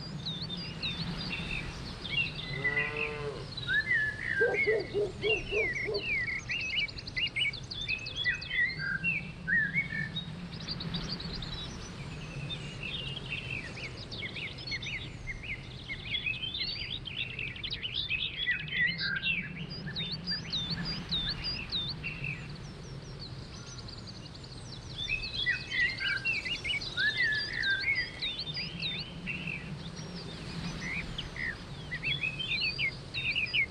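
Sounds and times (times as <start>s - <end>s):
morning breeze in the woods: 0.0s - 33.6s.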